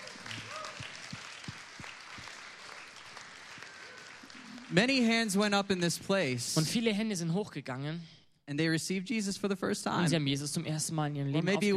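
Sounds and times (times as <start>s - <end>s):
audience applause: 0.0s - 5.8s
speech: 4.7s - 11.7s.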